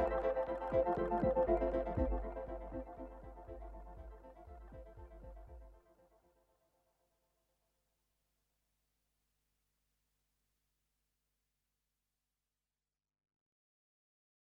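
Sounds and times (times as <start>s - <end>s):
synth sequence: 0.0s - 5.8s.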